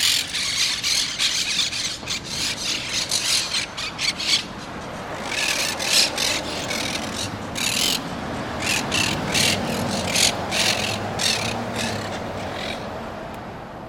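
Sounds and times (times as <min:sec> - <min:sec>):
monk parakeet squawks: 0:00.0 - 0:12.8.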